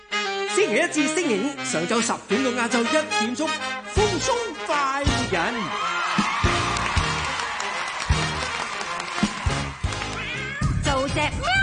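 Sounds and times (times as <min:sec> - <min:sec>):
speech: 0:00.6 - 0:06.0
thumping rhythmic backing: 0:03.8 - 0:11.6
cat meowing: 0:10.1 - 0:10.8.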